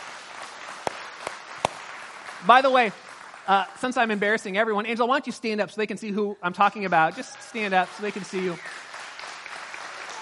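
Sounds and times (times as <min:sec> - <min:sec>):
scattered hand claps from a crowd: 0:00.0 - 0:03.5, 0:07.5 - 0:10.2
speech: 0:02.4 - 0:08.8.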